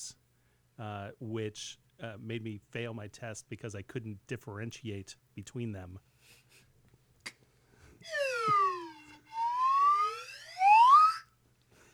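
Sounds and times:
speech: 0.8 - 6.6
slide whistle being played live: 8.0 - 11.3.

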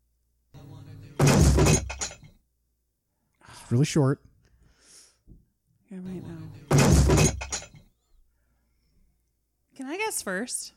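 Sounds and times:
dumbbell dropped on the floor: 1.2 - 2.4, 6.7 - 7.8
speech: 3.7 - 4.3, 10.1 - 10.7.

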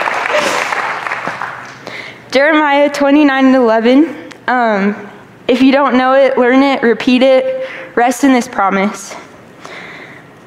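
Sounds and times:
audience clapping: 0.0 - 1.9
speech: 2.3 - 9.2.

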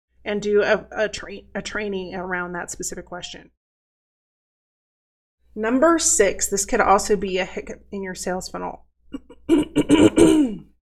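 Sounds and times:
speech: 0.2 - 3.6, 5.6 - 10.7
person clearing throat: 9.2 - 10.8.

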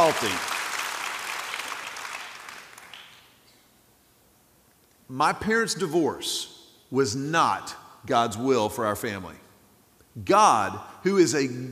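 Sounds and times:
audience clapping: 0.0 - 3.4
speech: 0.1 - 0.6, 5.1 - 9.4, 10.2 - 11.6.

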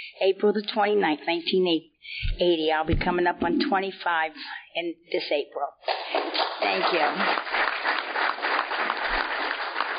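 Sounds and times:
speech: 0.1 - 8.0
audience clapping: 5.8 - 9.9.

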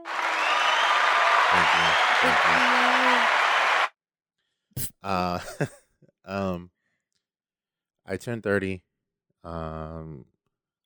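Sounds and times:
clapping for a 30th birthday: 0.0 - 3.9
speech: 1.5 - 3.4, 4.8 - 6.7, 8.1 - 10.4.

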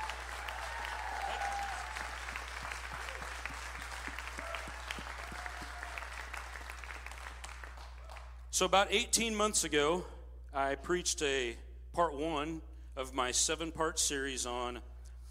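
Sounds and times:
audience applause: 0.0 - 8.3
speech: 8.6 - 14.9.

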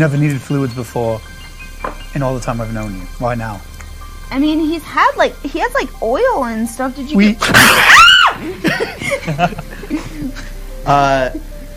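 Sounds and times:
speech: 0.0 - 1.3, 2.1 - 3.7, 4.3 - 11.5
person screaming: 7.5 - 8.4
laughter: 8.4 - 10.6.

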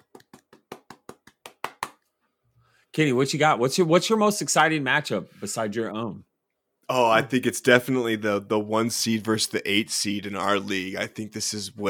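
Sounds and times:
golf clap: 0.0 - 2.1
speech: 3.0 - 6.3, 6.9 - 11.8.

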